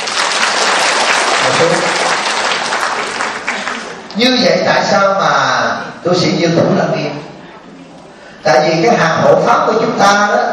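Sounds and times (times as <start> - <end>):
audience clapping at a Buddhist Dharma assembly in San Jose: 0.0 - 4.2
speech: 1.6 - 2.1, 4.2 - 7.3, 8.4 - 10.5.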